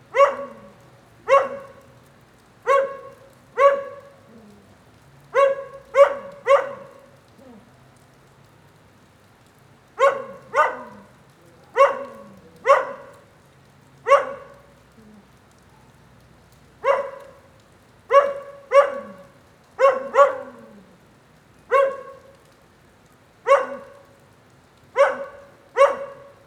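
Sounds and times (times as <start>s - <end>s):
light rain: 0.0s - 26.4s
dog barking: 0.1s - 2.0s, 2.6s - 4.5s, 5.3s - 7.2s, 10.0s - 13.3s, 14.0s - 14.8s, 16.8s - 21.0s, 21.7s - 22.4s, 23.4s - 24.2s, 24.9s - 26.4s.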